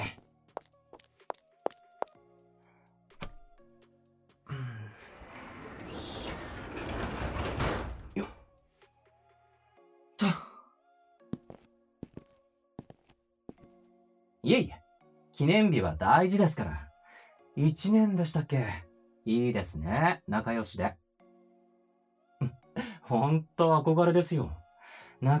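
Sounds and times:
shop entrance door rattling and scraping shut: 5.5 - 8.2
heavy thunk of a shop entrance door: 6.5 - 8.3
footsteps: 11.4 - 13.7
speech: 14.5 - 14.8, 15.4 - 16.8, 17.6 - 21.0, 23.1 - 24.6, 25.2 - 25.3.

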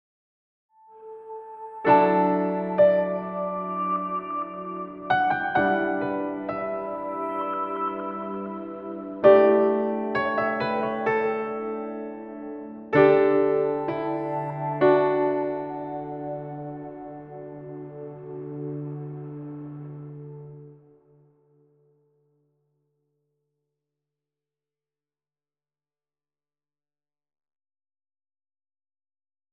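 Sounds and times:
jingle: 1.8 - 19.2.

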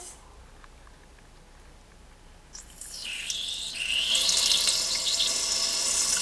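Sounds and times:
person urinating after drinking coffee: 2.5 - 6.1.

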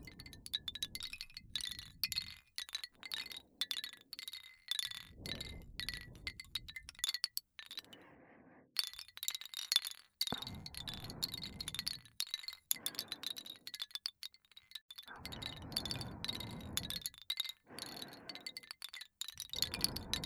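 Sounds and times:
person breathing: 0.0 - 2.3, 4.9 - 6.9, 7.7 - 8.8, 10.3 - 13.7, 15.1 - 18.8, 19.4 - 20.2
wooden wind chime: 0.0 - 8.0, 8.8 - 20.2.

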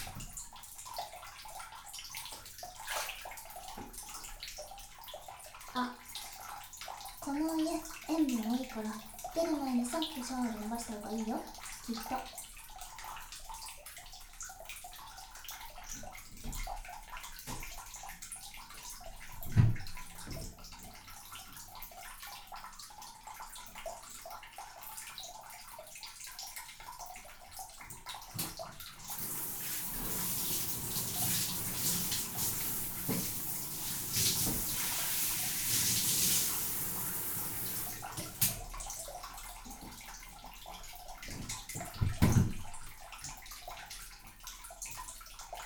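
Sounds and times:
running bath water: 0.0 - 45.6
speech: 5.8 - 6.0, 7.3 - 12.4
bath water splashing: 29.0 - 38.6.

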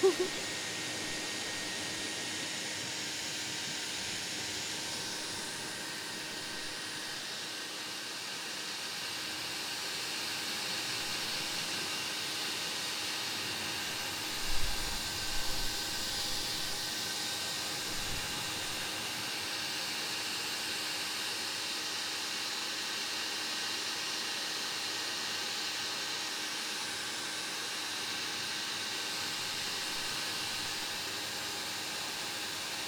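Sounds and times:
hair dryer blowing: 0.0 - 32.8.

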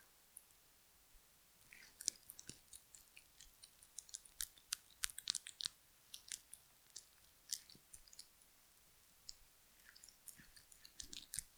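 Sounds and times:
wet squelching sounds: 1.7 - 8.4, 9.3 - 11.5.

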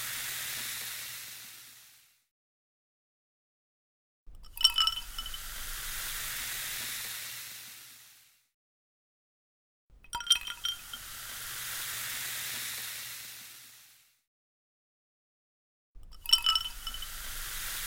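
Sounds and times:
carbonated drink fizzing: 0.0 - 2.0, 4.4 - 8.3, 10.2 - 14.0, 16.0 - 17.8.

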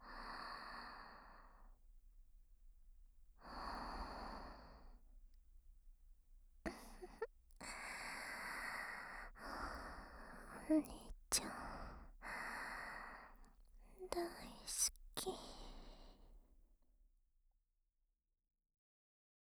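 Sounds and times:
younger sister breathing in sleep: 0.0 - 1.6, 3.4 - 5.0, 6.7 - 13.4, 14.0 - 16.3.

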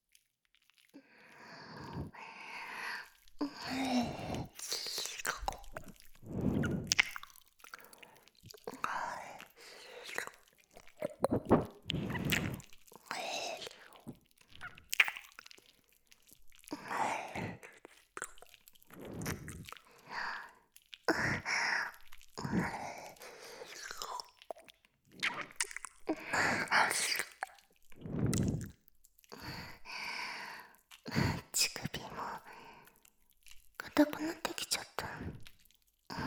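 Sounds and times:
wet ear licking and tasting sounds in a Japanese ASMR recording: 0.1 - 36.2
breathy whispering: 1.0 - 7.2, 7.8 - 14.8, 16.7 - 17.9, 18.9 - 24.3, 28.0 - 32.8, 33.8 - 35.5.

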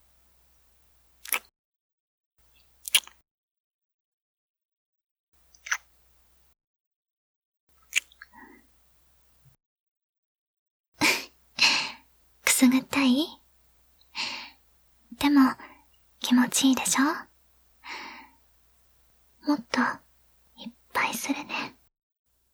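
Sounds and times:
ASMR ear kisses behind the ear: 1.2 - 1.5, 2.8 - 3.2, 5.5 - 6.0, 7.8 - 8.6
speech: 12.6 - 13.4, 15.2 - 17.3, 19.4 - 20.0, 20.6 - 21.8.

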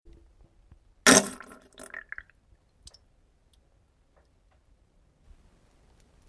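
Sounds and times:
farting: 1.1 - 2.2.

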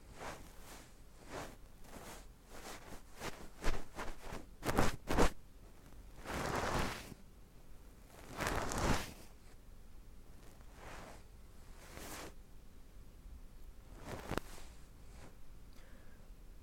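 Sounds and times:
soft fluffy ASMR sounds in the left ear: 0.0 - 7.2, 8.0 - 9.6, 10.3 - 12.4, 13.9 - 15.4.

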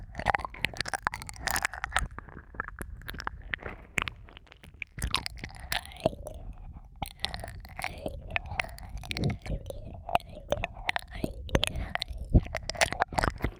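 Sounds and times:
wet ear licking sounds in an ASMR loop: 0.0 - 13.5.

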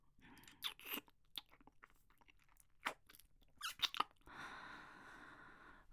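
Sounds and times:
oral sex sounds: 0.3 - 4.4.

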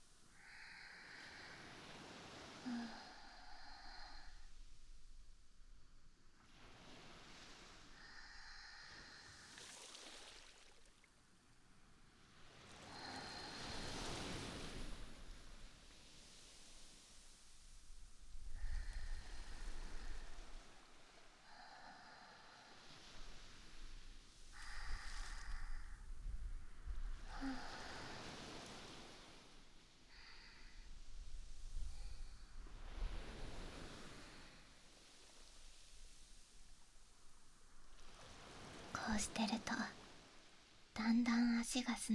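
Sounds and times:
ocean waves washing over sand: 0.1 - 4.4, 6.2 - 40.9
speech: 39.0 - 40.0, 41.0 - 42.1.

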